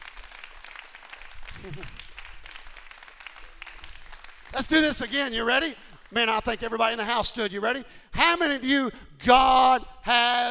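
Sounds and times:
audience applause: 0.0s - 6.0s
speech: 1.6s - 2.0s, 4.5s - 10.4s.

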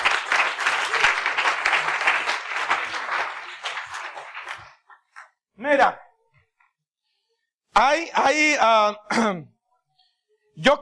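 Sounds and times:
audience clapping hands: 0.0s - 5.4s
speech: 5.7s - 6.0s, 7.8s - 9.5s, 10.6s - 10.7s.

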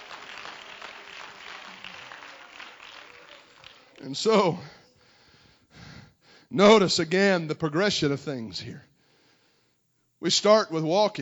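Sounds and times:
audience clapping hands: 0.0s - 4.8s
speech: 4.0s - 4.8s, 6.5s - 8.9s, 10.2s - 11.2s.

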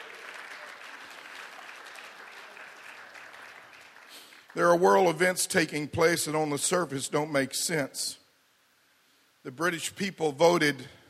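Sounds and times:
audience hand clapping: 0.0s - 5.3s
speech: 4.5s - 8.2s, 9.4s - 11.0s.

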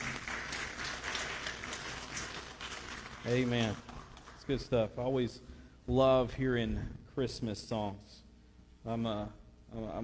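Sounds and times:
audience applause: 0.0s - 4.4s
speech: 3.2s - 8.2s, 8.8s - 10.0s.

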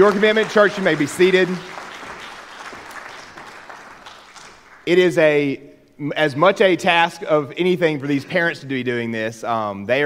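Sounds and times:
speech: 0.0s - 1.7s, 4.8s - 10.0s
audience applause: 0.0s - 4.9s.

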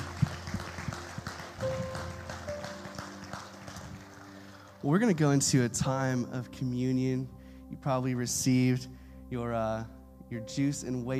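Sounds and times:
audience clapping: 0.0s - 5.4s
speech: 4.8s - 11.1s.

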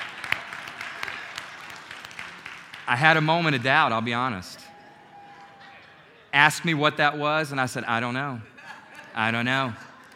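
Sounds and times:
golf clap: 0.0s - 3.7s
speech: 2.9s - 4.6s, 6.3s - 8.5s, 9.2s - 9.8s
laughter: 8.3s - 10.1s.

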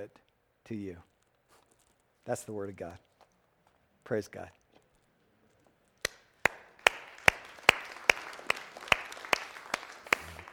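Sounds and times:
speech: 0.0s - 1.1s, 2.3s - 3.1s, 4.1s - 4.6s
audience clapping: 6.0s - 10.5s.

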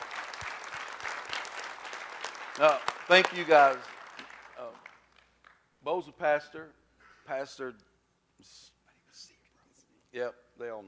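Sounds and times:
audience applause: 0.0s - 5.3s
loud single claps: 0.0s - 5.6s
speech: 2.6s - 3.9s, 5.8s - 9.3s, 10.1s - 10.8s.

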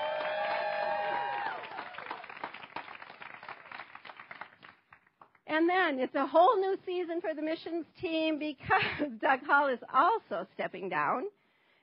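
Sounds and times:
crowd screaming thank you: 0.0s - 2.3s
crowd cheering: 0.0s - 4.2s
scattered applause: 0.0s - 5.4s
speech: 5.6s - 11.4s.

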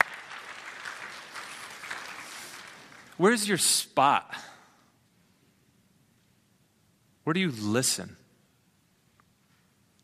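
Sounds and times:
crowd clapping: 0.0s - 3.4s
speech: 3.2s - 4.5s, 7.3s - 8.2s.

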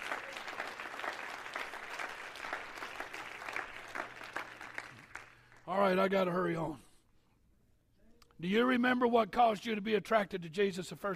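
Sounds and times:
audience clapping: 0.0s - 5.7s
speech: 5.7s - 6.8s, 8.4s - 11.1s.

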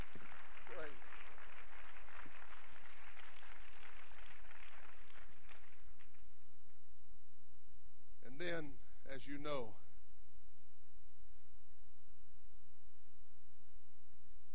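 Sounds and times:
audience clapping hands: 0.0s - 6.4s
speech: 8.4s - 9.8s.

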